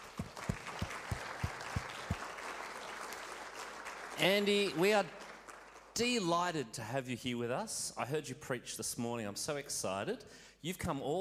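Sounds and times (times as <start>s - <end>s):
audience applause welcoming a guest speaker at a World Missions Conference: 0.0s - 5.9s
speech: 4.2s - 5.2s, 6.0s - 11.1s.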